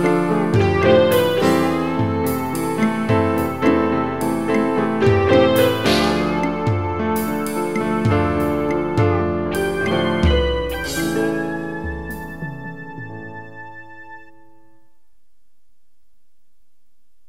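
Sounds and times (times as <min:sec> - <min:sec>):
drums: 0:00.0 - 0:13.4
guitar: 0:00.0 - 0:15.0
piano: 0:00.0 - 0:15.0.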